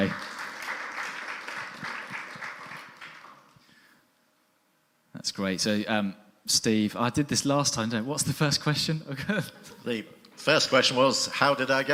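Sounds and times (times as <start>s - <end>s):
audience clapping: 0.0s - 3.7s
speech: 5.3s - 11.9s.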